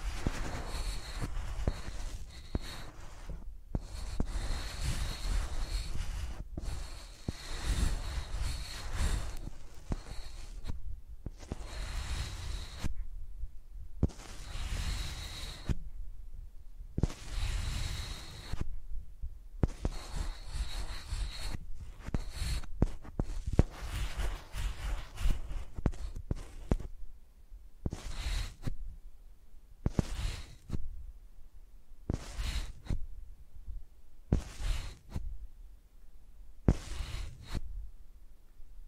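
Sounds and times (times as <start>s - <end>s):
microphones rubbed and scraped like pencils: 0.0s - 13.0s, 14.0s - 15.9s, 17.0s - 18.7s, 19.6s - 26.9s, 27.8s - 28.8s, 29.8s - 30.9s, 32.1s - 33.0s, 34.3s - 35.3s, 36.6s - 37.7s.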